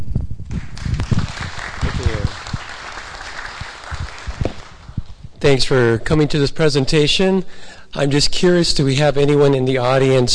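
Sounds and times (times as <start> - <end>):
audience applause at a free-software presentation: 0.6 - 5.0
speech: 5.4 - 10.3.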